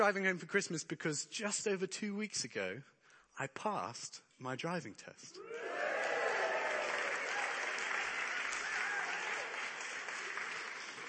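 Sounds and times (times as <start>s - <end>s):
speech: 0.0s - 5.9s
rapturous applause: 5.4s - 11.0s.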